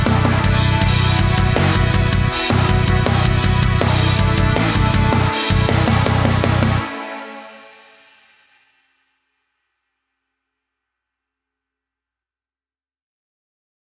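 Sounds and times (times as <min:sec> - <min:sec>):
karaoke singing: 0:00.0 - 0:07.3.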